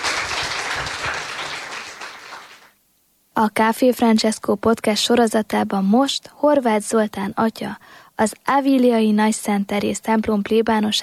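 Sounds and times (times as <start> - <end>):
audience applause: 0.0 - 2.8
speech: 3.4 - 11.0.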